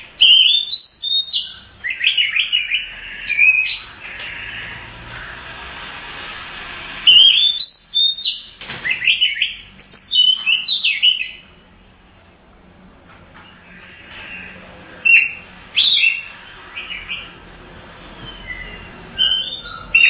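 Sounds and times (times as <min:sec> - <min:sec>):
Oriental magpie-robin singing: 0:00.0 - 0:04.8, 0:07.1 - 0:11.5, 0:13.5 - 0:17.4, 0:18.2 - 0:20.0.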